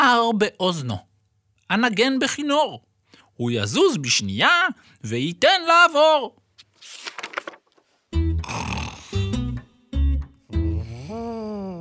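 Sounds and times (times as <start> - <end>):
speech: 0.2 - 1.1, 1.7 - 7.3
sleeping elephant snoring: 8.4 - 9.2.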